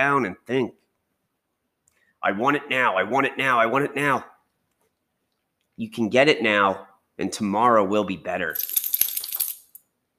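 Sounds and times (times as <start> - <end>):
speech: 0.0 - 0.8, 2.2 - 4.3, 5.8 - 8.8
dog shaking its head, collar tags jingling: 8.5 - 9.8.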